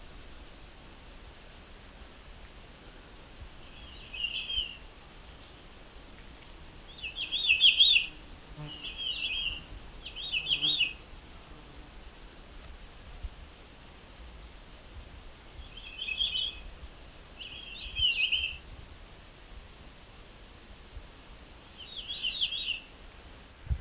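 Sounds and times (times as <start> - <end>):
soft low hiss: 0.0 - 23.8
birds singing in Bruce Peninsula National Park, Ontario: 3.6 - 5.7, 6.8 - 11.0, 15.6 - 16.6, 17.4 - 18.6, 21.7 - 22.8.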